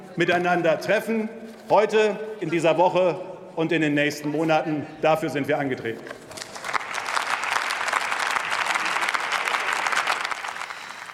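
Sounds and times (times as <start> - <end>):
speech: 0.2 - 6.2
parliamentary applause: 6.3 - 11.1.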